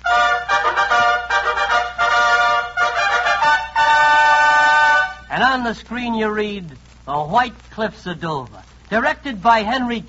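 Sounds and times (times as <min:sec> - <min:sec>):
trumpet fanfare: 0:00.0 - 0:05.3
speech: 0:05.5 - 0:10.0.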